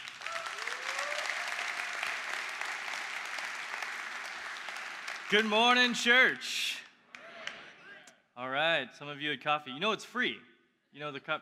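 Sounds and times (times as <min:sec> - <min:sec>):
church congregation applauding to welcome a pastor: 0:00.0 - 0:06.5
speech: 0:05.3 - 0:06.8, 0:08.6 - 0:11.3.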